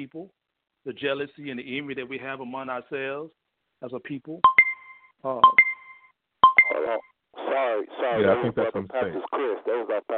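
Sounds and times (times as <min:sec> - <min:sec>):
speech: 0:00.0 - 0:04.6, 0:05.2 - 0:05.7, 0:06.9 - 0:10.1
timer chime tones: 0:04.5 - 0:06.8
talking: 0:06.7 - 0:10.1.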